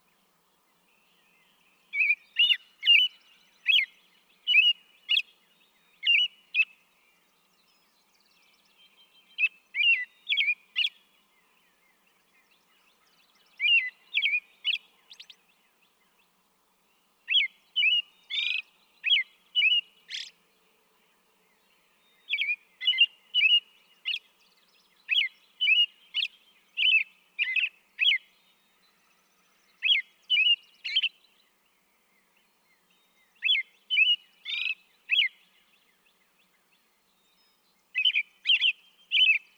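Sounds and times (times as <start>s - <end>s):
American robin singing: 0.1s - 39.5s.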